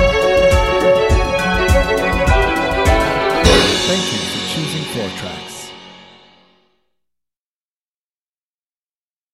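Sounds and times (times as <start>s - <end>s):
breakbeat drums: 0.0s - 6.0s.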